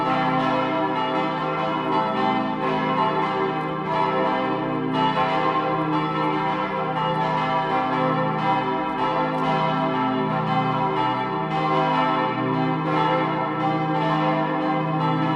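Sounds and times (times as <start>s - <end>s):
full peal of church bells of a minster: 0.0s - 15.3s.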